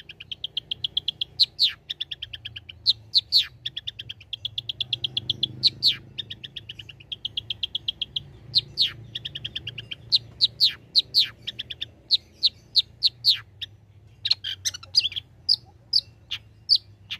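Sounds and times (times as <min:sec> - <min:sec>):
long-tailed shrike singing: 0:00.0 - 0:17.1.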